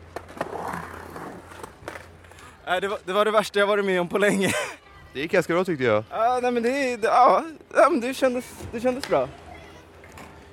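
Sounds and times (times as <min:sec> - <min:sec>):
skateboard rolling down ramp: 0:00.0 - 0:02.5
speech: 0:02.7 - 0:09.4.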